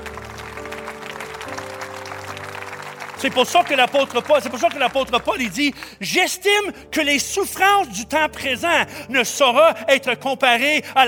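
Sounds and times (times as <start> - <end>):
audience applause: 0.0 - 6.0
speech: 3.2 - 11.0.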